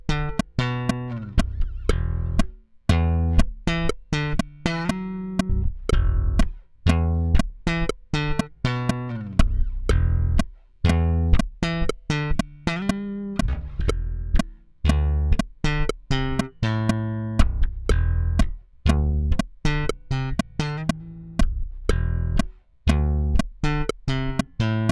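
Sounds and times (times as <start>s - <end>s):
Christmas bass: 0.0s - 24.9s.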